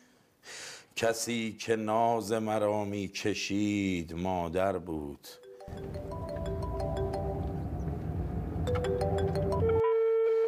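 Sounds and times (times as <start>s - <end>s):
speech: 1.0s - 6.2s
telephone ringing in a film with electronic ringtone melody: 5.4s - 7.9s, 8.6s - 9.9s
low rumble: 5.9s - 9.8s.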